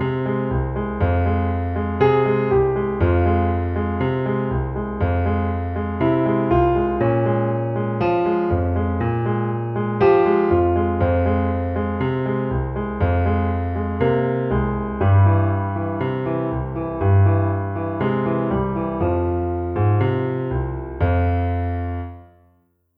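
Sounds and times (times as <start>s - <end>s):
solo piano tango: 0.0s - 22.6s.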